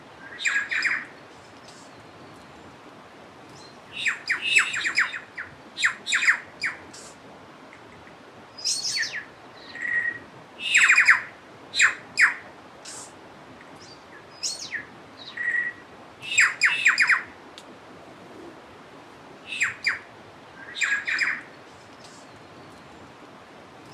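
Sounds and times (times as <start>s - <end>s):
low steady hiss: 0.0s - 23.9s
bird chirps and whistled notes: 0.2s - 2.6s, 3.5s - 7.1s, 8.6s - 13.1s, 13.8s - 17.2s, 19.5s - 20.0s, 20.6s - 23.0s.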